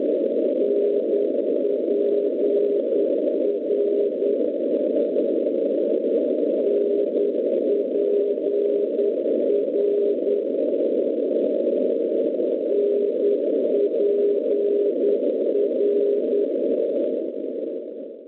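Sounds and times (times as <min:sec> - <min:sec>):
NDB radio beacon signal at 488 kHz in Tomaszow: 0:00.2 - 0:04.6, 0:05.7 - 0:17.8.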